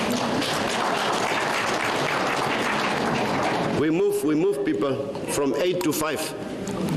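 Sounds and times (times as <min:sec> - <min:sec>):
audience clapping hands: 0:00.0 - 0:03.8
speech: 0:03.8 - 0:06.8.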